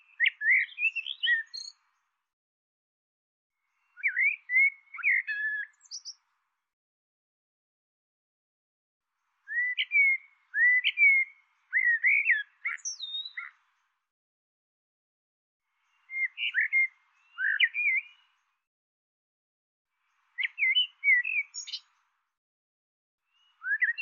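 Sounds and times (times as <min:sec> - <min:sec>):
bird twittering chirps: 0:00.0 - 0:01.8, 0:03.8 - 0:06.2, 0:09.5 - 0:13.7, 0:15.8 - 0:18.4, 0:20.1 - 0:21.9, 0:23.3 - 0:24.0.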